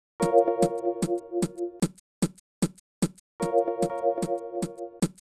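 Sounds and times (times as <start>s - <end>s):
messy beat: 0.2s - 1.8s, 3.4s - 5.1s.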